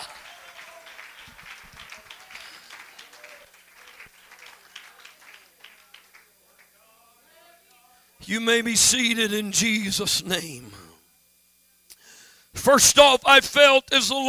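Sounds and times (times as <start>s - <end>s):
audience clapping: 0.0s - 6.9s
speech: 8.3s - 10.8s, 12.7s - 14.2s.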